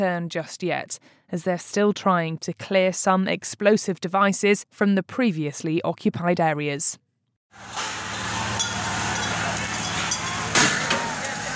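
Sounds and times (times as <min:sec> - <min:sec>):
speech: 0:00.0 - 0:08.0
water cannons used on protesters in Sri Lanka: 0:07.6 - 0:11.5
protester crowd voices: 0:08.6 - 0:11.5.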